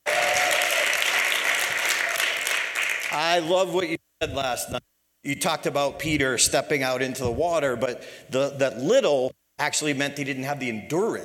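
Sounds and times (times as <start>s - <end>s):
person whooping: 0.0s - 1.0s
audience applause: 0.0s - 3.5s
speech: 3.2s - 11.2s.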